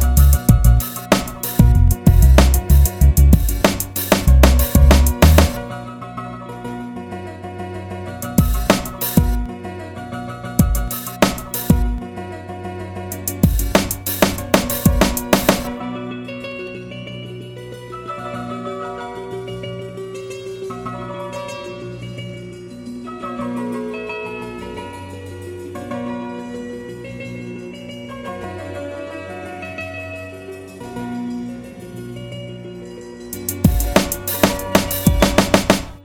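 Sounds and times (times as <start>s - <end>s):
instrumental beat: 0.0s - 5.7s, 8.2s - 9.5s, 10.6s - 12.0s, 13.1s - 15.8s, 33.3s - 36.0s.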